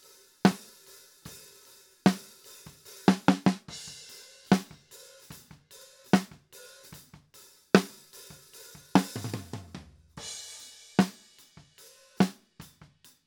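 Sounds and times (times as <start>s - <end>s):
snare drum top: 2.1s - 3.8s, 4.5s - 5.6s, 6.2s - 7.2s, 7.8s - 12.4s.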